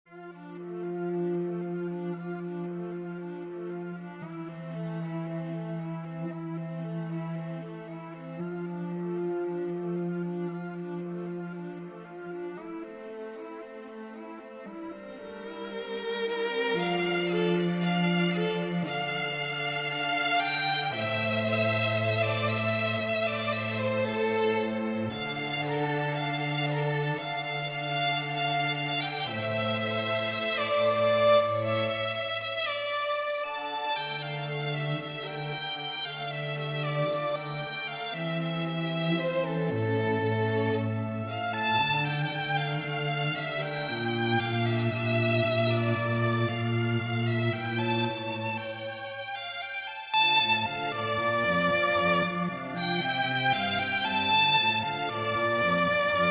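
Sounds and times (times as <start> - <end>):
string quartet: 0.0 - 56.2.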